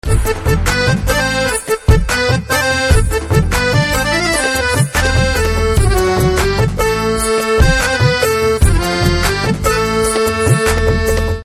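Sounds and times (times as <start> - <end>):
instrumental music: 0.0 - 11.4.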